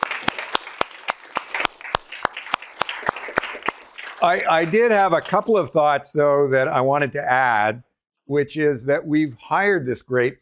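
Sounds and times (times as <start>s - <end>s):
audience applause: 0.0s - 6.0s
speech: 4.2s - 10.3s.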